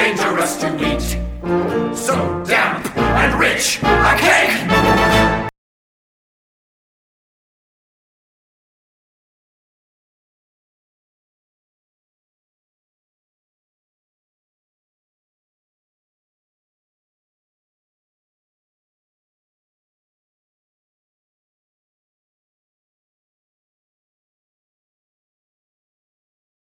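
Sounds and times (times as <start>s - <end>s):
tango audition cut: 0.0s - 5.5s.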